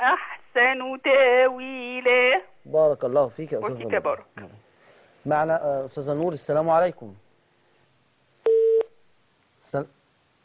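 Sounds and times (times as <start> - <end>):
speech: 0.0 - 4.6, 5.2 - 7.2, 9.7 - 10.0
telephone tone signalling an incoming caller: 8.5 - 8.9.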